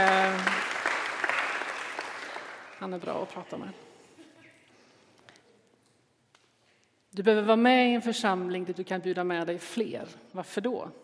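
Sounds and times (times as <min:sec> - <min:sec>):
audience applause: 0:00.0 - 0:03.4
speech: 0:02.8 - 0:03.9, 0:07.2 - 0:11.0.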